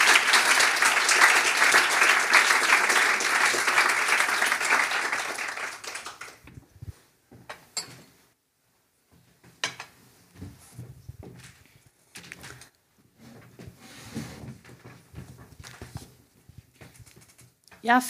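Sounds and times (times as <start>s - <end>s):
audience applause: 0.0s - 6.5s
speech: 17.9s - 18.0s.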